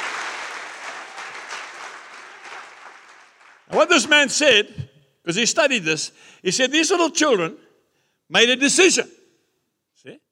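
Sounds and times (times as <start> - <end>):
audience applause: 0.0 - 4.2
speech: 3.7 - 7.6, 8.3 - 9.2, 10.0 - 10.2.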